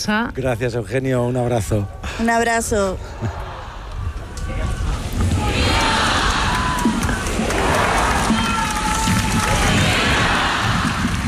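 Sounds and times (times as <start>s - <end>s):
speech: 0.0s - 3.4s
large crowd cheering and chanting vivas to the Pope: 3.0s - 11.2s.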